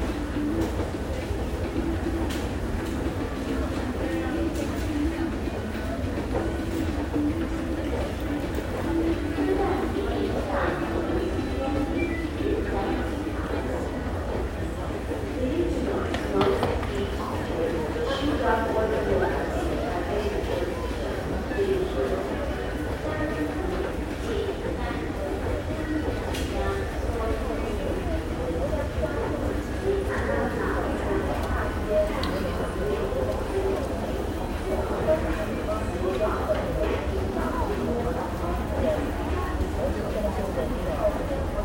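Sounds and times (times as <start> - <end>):
Taipei Main Station metro ride: 0.0 - 41.6.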